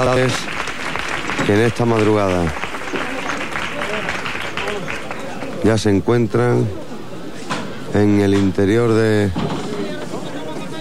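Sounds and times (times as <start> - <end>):
speech: 0.0 - 0.6, 1.4 - 2.6, 5.6 - 6.8, 7.9 - 9.6
crowd applause for a religious brotherhood's procession: 0.0 - 5.9.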